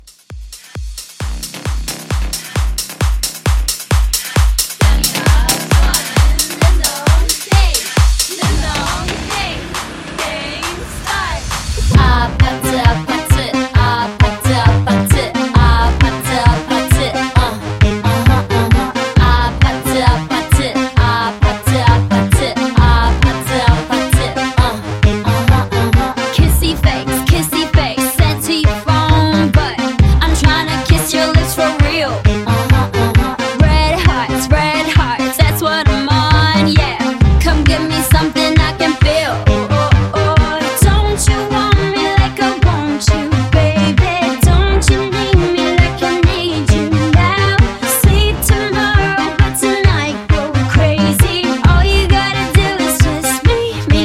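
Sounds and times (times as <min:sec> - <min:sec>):
house music mashup: 0:00.0 - 0:54.0.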